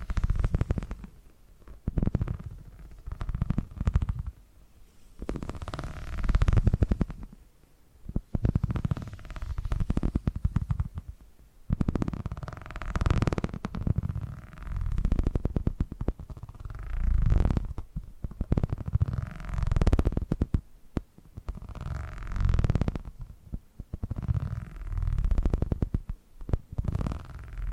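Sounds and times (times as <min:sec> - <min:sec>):
purring: 0:00.0 - 0:04.4, 0:05.1 - 0:07.4, 0:08.0 - 0:20.6, 0:21.2 - 0:27.7.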